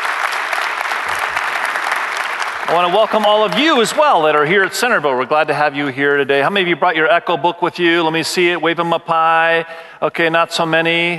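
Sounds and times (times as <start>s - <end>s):
audience applause at a live multi-site gathering: 0.0s - 5.0s
speech: 2.7s - 11.1s.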